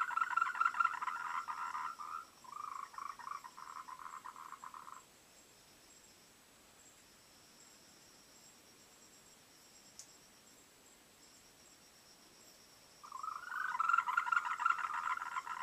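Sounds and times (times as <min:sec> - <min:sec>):
frogs calling in a dense chorus of overlapping croaks: 0:00.0 - 0:05.1, 0:12.4 - 0:15.6.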